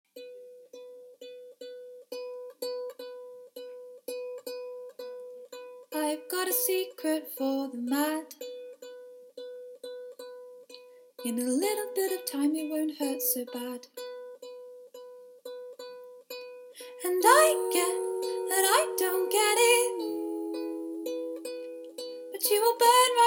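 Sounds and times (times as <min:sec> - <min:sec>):
ukulele: 0:00.1 - 0:23.2
person singing a cover: 0:06.0 - 0:08.4, 0:16.8 - 0:23.2.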